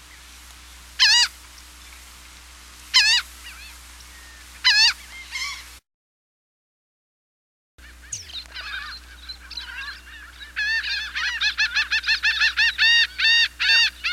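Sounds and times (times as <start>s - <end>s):
laughing gull giving rapid nasal laughing notes: 3.0s - 3.8s, 4.6s - 5.7s, 7.8s - 14.1s.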